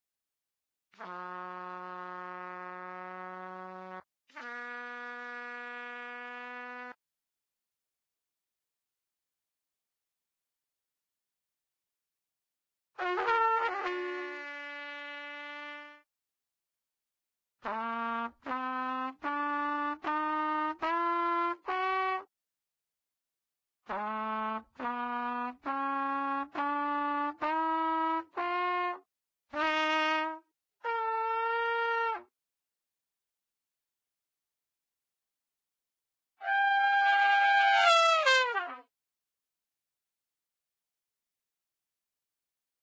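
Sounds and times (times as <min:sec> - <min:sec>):
trumpet practice: 0:01.0 - 0:07.0, 0:13.0 - 0:16.0, 0:17.6 - 0:22.2, 0:23.9 - 0:32.3, 0:36.4 - 0:38.9.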